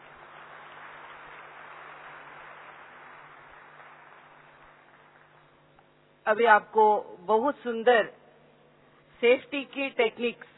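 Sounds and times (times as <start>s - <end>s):
audience applause welcoming a speaker at an Om Shanti gathering: 0.0s - 5.6s
speech: 6.3s - 8.2s, 9.2s - 10.5s.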